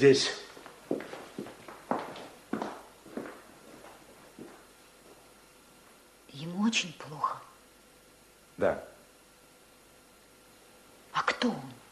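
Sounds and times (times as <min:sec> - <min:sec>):
speech: 0:00.0 - 0:00.4, 0:06.7 - 0:07.2
footsteps of people walking off: 0:00.3 - 0:06.0.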